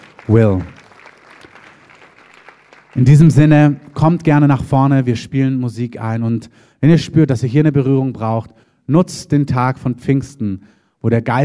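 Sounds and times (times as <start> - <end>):
audience applause: 0.0 - 4.6
speech: 0.3 - 0.8, 3.0 - 11.4.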